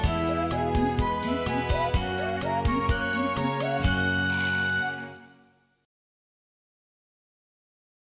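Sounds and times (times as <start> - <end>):
karaoke singing: 0.0 - 4.8.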